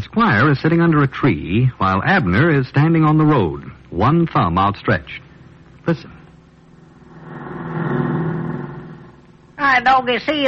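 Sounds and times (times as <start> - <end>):
speech: 0.1 - 6.2, 9.6 - 10.4
car driving past on highway: 6.9 - 9.3.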